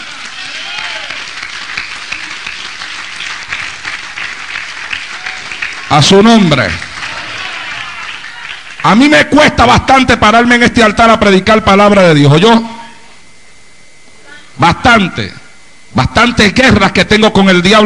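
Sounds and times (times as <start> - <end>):
audience applause: 0.0 - 9.0
speech: 5.9 - 6.9, 8.8 - 12.8, 14.6 - 17.8.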